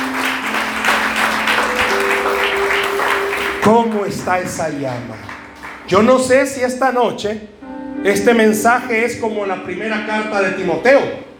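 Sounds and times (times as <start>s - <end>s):
audience applauding: 0.0s - 6.7s
speech: 3.7s - 5.3s, 5.9s - 11.3s.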